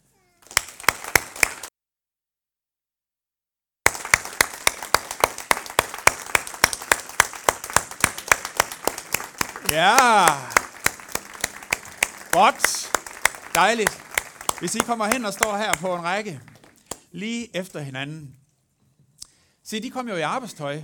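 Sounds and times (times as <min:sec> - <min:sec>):
small group clapping hands loudly: 0:00.4 - 0:01.7, 0:03.8 - 0:17.1
speech: 0:09.7 - 0:10.5, 0:12.4 - 0:12.8, 0:13.6 - 0:14.0, 0:14.6 - 0:16.5, 0:17.1 - 0:18.4, 0:19.7 - 0:20.8.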